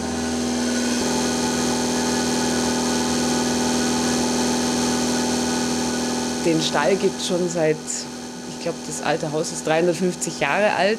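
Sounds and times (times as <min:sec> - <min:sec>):
vacuum pump of a milking machine humming in a cow barn: 0:00.0 - 0:10.9
speech: 0:06.4 - 0:10.9.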